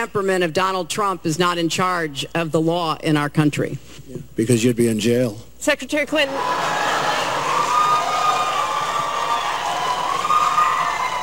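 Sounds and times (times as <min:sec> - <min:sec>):
speech: 0:00.0 - 0:06.8
debate audience applauding and cheering: 0:06.3 - 0:11.2.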